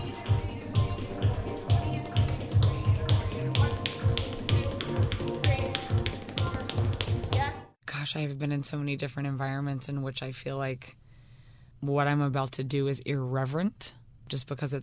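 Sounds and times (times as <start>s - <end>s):
tap dance steps: 0.4s - 7.6s
speech: 8.1s - 11.0s, 11.8s - 14.8s.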